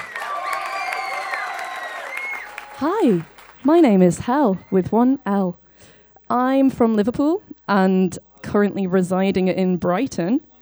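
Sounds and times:
cheers and whoops: 0.0 - 3.4
audience applause: 0.0 - 3.7
speech: 2.8 - 10.5.

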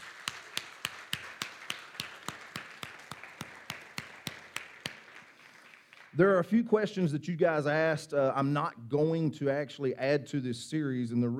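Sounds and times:
round of applause: 0.0 - 6.2
speech: 6.2 - 11.3.

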